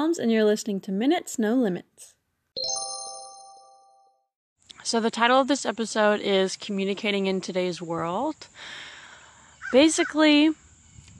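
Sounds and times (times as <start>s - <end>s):
speech: 0.0s - 2.1s, 4.9s - 8.9s, 9.7s - 10.6s
birds cawing outdoors: 9.6s - 9.8s.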